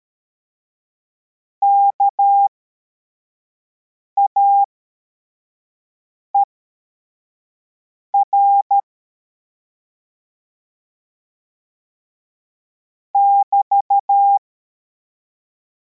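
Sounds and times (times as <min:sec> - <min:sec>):
CW morse code beeps: 0:01.6 - 0:02.5, 0:08.2 - 0:08.8, 0:13.2 - 0:14.4.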